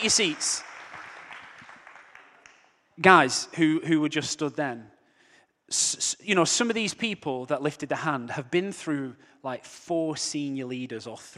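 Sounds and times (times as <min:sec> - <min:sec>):
speech: 0:00.0 - 0:00.7, 0:03.0 - 0:04.9, 0:05.7 - 0:11.3
audience applause: 0:00.0 - 0:02.7.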